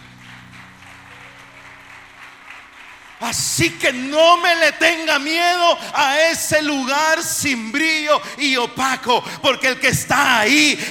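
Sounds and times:
crowd clapping in praise: 0.0 - 5.6
speech: 3.2 - 10.8.

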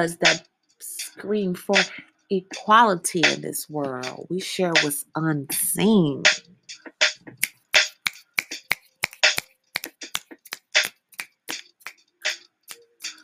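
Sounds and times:
speech: 0.0 - 7.5
finger snapping: 7.8 - 12.0.

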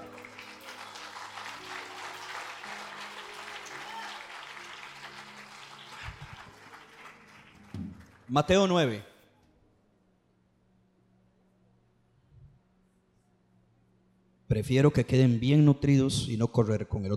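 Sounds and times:
audience applause: 0.0 - 8.6
speech: 7.8 - 9.1, 14.6 - 17.1.

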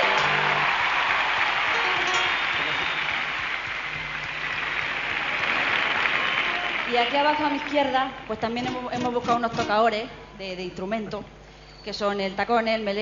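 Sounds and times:
loud audience applause: 0.0 - 8.0
speech: 6.9 - 13.0.

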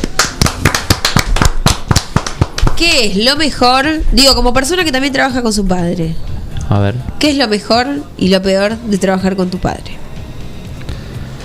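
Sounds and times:
applause sound effect: 0.0 - 3.0
speech: 2.8 - 10.0.

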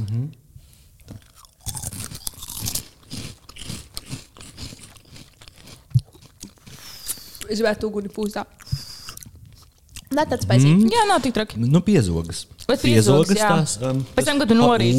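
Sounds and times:
speech: 0.1 - 0.4, 7.5 - 8.8, 10.2 - 14.9
chewing sour gummy candy: 1.0 - 11.0.

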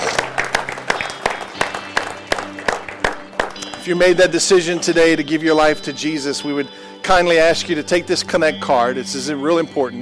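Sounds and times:
church audience hand clapping: 0.0 - 5.2
speech: 3.9 - 10.0.

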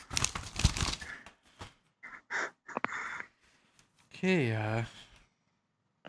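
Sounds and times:
paper being uncrinkled: 0.0 - 1.1
speech: 4.2 - 5.0.

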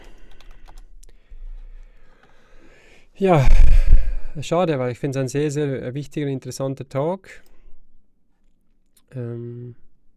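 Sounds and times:
rapid typing on a computer keyboard: 0.0 - 0.9
speech: 3.2 - 3.7, 4.4 - 7.5, 9.1 - 9.8.

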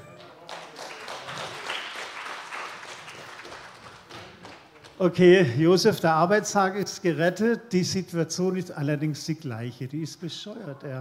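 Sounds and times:
applause: 0.0 - 5.0
speech: 5.0 - 11.0.

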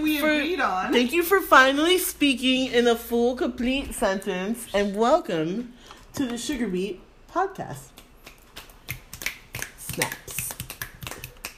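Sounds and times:
speech: 0.2 - 7.9, 10.0 - 10.4
fingers snapping: 7.9 - 11.5.

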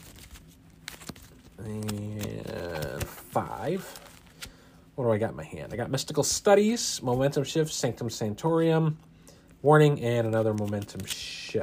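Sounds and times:
deck of cards shuffling: 0.0 - 4.6, 10.2 - 11.6
speech: 1.6 - 2.1, 3.4 - 4.0, 5.0 - 11.6.

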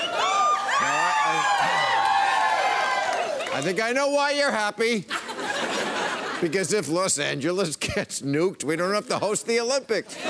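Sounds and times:
crowd cheering and yelling: 0.0 - 4.3
speech: 3.6 - 10.2
laughter: 5.0 - 6.9, 10.0 - 10.2.

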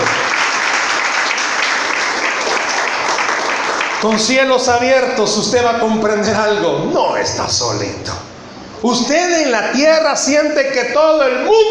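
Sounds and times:
audience applauding: 0.0 - 4.3
speech: 4.0 - 8.2, 8.8 - 11.6.

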